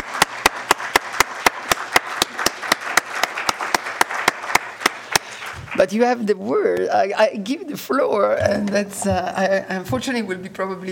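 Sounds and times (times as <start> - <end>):
audience clapping: 0.0 - 6.1
speech: 5.8 - 10.9.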